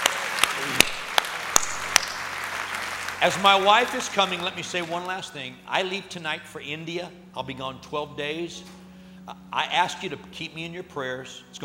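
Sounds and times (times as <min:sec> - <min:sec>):
church congregation clapping to welcome new believers: 0:00.0 - 0:05.6
speech: 0:03.2 - 0:11.6.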